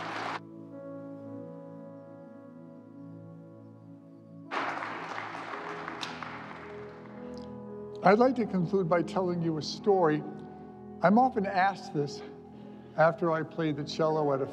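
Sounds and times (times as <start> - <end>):
applause: 0.0 - 0.4, 4.5 - 7.5
speech: 8.0 - 10.4, 11.0 - 12.3, 13.0 - 14.5.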